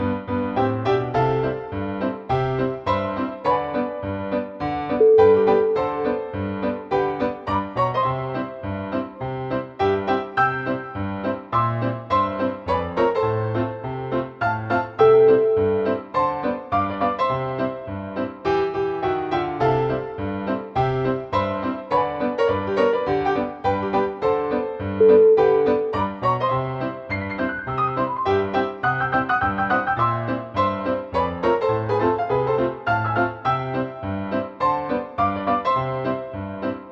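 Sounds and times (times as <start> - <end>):
ragtime music: 0.0 - 36.9.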